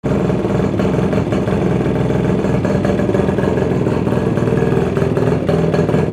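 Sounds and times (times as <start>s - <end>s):
vehicles: 0.0s - 6.1s.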